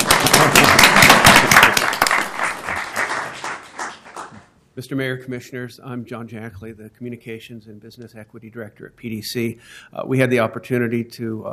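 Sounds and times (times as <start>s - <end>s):
round of applause: 0.0s - 4.5s
speech: 4.8s - 11.5s.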